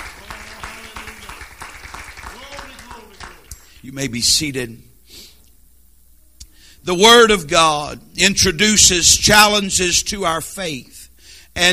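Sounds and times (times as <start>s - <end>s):
audience clapping hands: 0.0s - 3.8s
speech: 3.8s - 4.9s, 6.9s - 11.0s, 11.6s - 11.7s.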